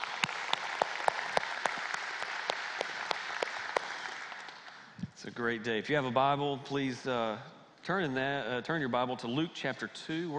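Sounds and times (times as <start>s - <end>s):
congregation clapping during a church gathering: 0.0s - 5.0s
speech: 5.2s - 10.3s.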